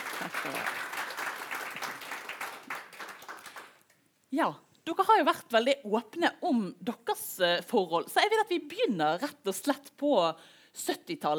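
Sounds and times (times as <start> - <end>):
audience applause: 0.0 - 3.8
speech: 0.2 - 0.8, 4.3 - 11.3.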